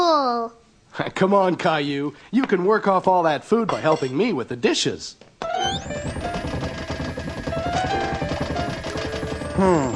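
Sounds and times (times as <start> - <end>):
speech: 1.0 - 6.4, 9.6 - 9.9
water pipes banging and clanking: 5.4 - 9.9.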